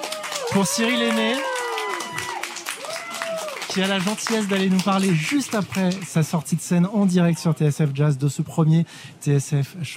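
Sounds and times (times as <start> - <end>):
voices calling out and cheering: 0.0 - 6.0
crowd applauding: 0.0 - 6.5
speech: 0.5 - 1.5, 3.7 - 9.9.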